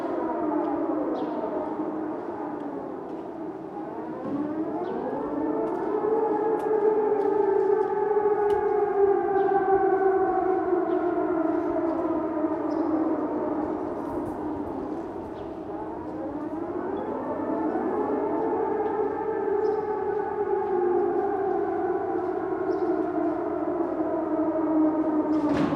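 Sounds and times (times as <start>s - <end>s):
alarm sirens: 0.0s - 25.7s.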